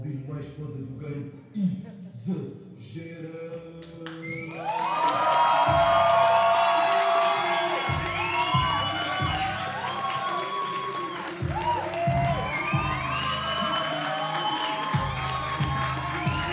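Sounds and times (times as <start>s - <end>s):
speech: 0.3s - 3.4s
large crowd cheering with whoops and shouts: 4.2s - 16.5s.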